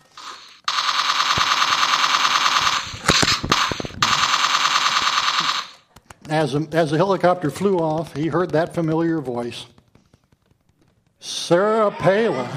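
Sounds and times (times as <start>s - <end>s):
machine gun firing: 0.0s - 5.9s
speech: 6.3s - 9.8s, 11.5s - 12.5s.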